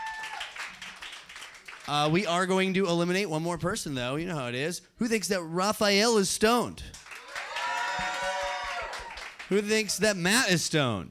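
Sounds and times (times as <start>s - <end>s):
audience clapping: 0.0s - 2.5s, 6.8s - 10.3s
speech: 1.9s - 6.9s, 9.5s - 11.0s.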